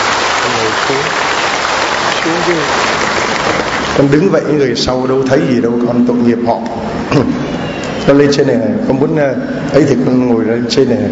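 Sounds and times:
audience applause: 0:00.0 - 0:04.3
speech: 0:00.9 - 0:01.2, 0:02.2 - 0:11.1.

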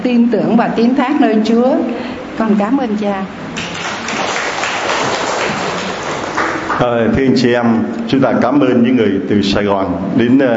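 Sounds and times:
speech: 0:00.1 - 0:03.5, 0:06.8 - 0:10.5
crowd clapping: 0:03.5 - 0:07.1.

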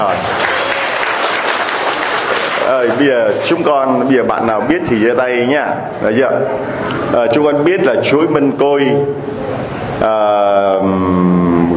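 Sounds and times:
children applauding to welcome a prize quiz: 0:00.0 - 0:03.1
speech: 0:02.7 - 0:11.7.

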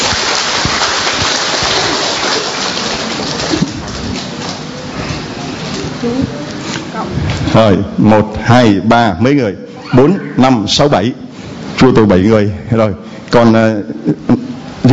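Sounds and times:
audience applauding: 0:00.0 - 0:04.7
speech: 0:07.6 - 0:11.2, 0:11.8 - 0:14.9.

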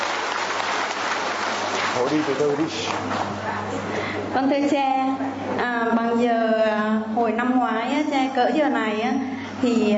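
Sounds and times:
crowd applauding: 0:00.0 - 0:03.0
speech: 0:02.0 - 0:09.9.

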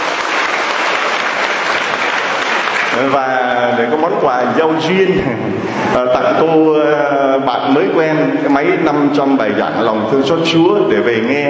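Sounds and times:
audience applause at a gathering: 0:00.0 - 0:03.3
speech: 0:03.0 - 0:11.4.

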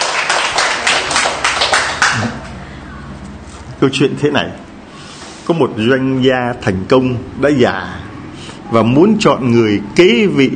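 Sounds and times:
audience applause: 0:00.0 - 0:02.5
speech: 0:03.8 - 0:04.7, 0:05.5 - 0:08.0, 0:08.7 - 0:10.5.

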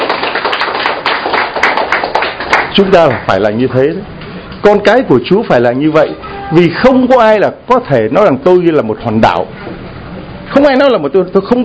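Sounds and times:
church congregation applause during a sermon: 0:00.0 - 0:03.4
speech: 0:02.8 - 0:09.8, 0:10.5 - 0:11.6.

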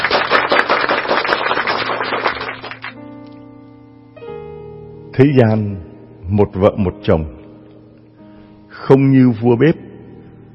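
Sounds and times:
crowd applause: 0:00.0 - 0:03.0
soft sustained musical tones: 0:02.6 - 0:10.5
speech: 0:05.2 - 0:07.4, 0:08.9 - 0:09.8.

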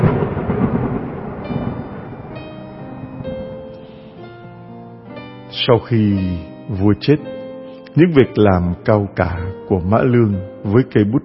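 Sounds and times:
thunder in a storm: 0:00.0 - 0:03.9
speech: 0:05.6 - 0:11.2.

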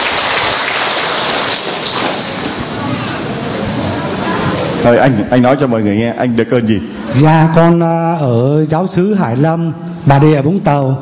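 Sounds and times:
crowd applauding: 0:00.0 - 0:03.8
speech: 0:04.8 - 0:10.9.

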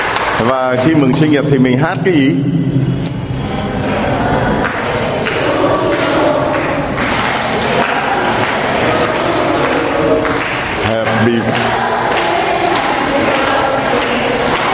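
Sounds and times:
audience applause: 0:00.0 - 0:01.3, 0:04.2 - 0:14.7
speech: 0:00.4 - 0:02.9
faint crowd murmur: 0:02.1 - 0:14.7.

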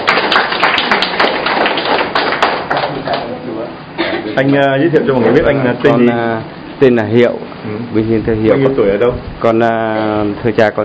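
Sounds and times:
crowd applause: 0:00.0 - 0:03.3
speech: 0:04.4 - 0:10.8.

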